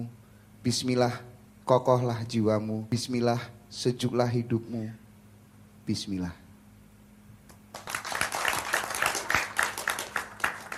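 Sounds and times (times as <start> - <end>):
speech: 0.0 - 5.0, 5.9 - 6.4
audience applause at an evening religious gathering: 7.7 - 10.7.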